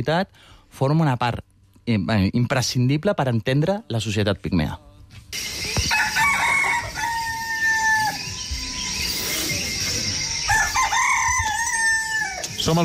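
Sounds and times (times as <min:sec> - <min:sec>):
speech: 0:00.0 - 0:05.4, 0:12.7 - 0:12.8
morning birds: 0:05.4 - 0:12.8
morning insects: 0:05.4 - 0:12.8
rooster crowing: 0:05.7 - 0:12.6.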